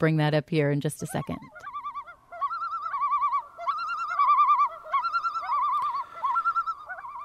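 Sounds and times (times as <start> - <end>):
speech: 0.0 - 1.7
loon pair calling in duet: 1.0 - 7.2.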